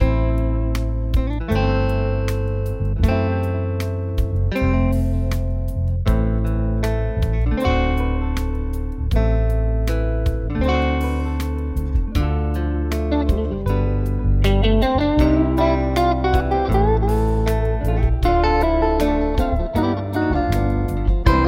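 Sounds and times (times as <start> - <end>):
calm guitar music: 0.0 - 21.4.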